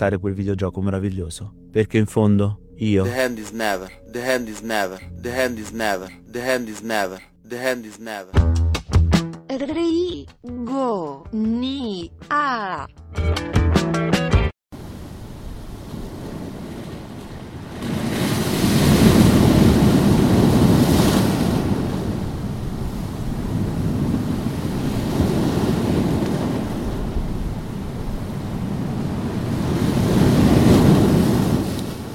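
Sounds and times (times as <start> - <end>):
speech: 0.0 - 8.6, 9.5 - 14.0
gusty wind: 14.8 - 32.1
sea waves washing onto the beach of Giampilieri: 14.8 - 32.1.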